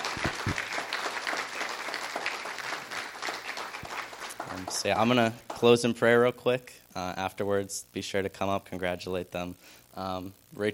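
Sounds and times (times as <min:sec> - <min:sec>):
audience clapping for a group of performers: 0:00.0 - 0:05.8
speech: 0:04.7 - 0:10.7.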